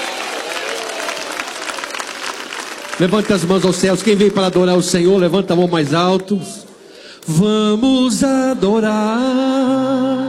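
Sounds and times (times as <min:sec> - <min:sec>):
audience applause: 0:00.0 - 0:05.1
speech: 0:03.0 - 0:06.6, 0:07.3 - 0:10.2.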